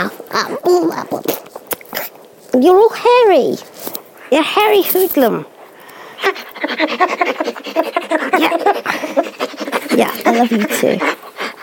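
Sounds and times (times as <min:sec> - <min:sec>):
speech: 0:00.0 - 0:01.5, 0:02.6 - 0:05.5, 0:06.2 - 0:11.4
dog panting: 0:05.4 - 0:11.6.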